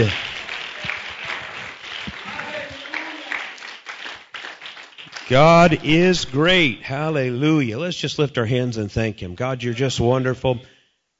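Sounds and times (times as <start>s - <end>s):
speech: 0.0s - 0.2s, 5.3s - 10.7s
audience hand clapping: 0.0s - 6.1s.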